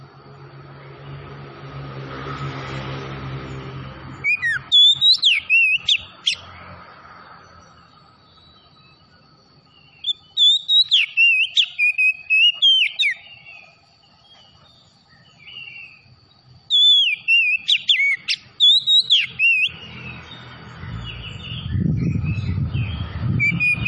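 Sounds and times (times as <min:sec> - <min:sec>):
Oriental magpie-robin singing: 0:04.2 - 0:06.5, 0:09.7 - 0:23.8.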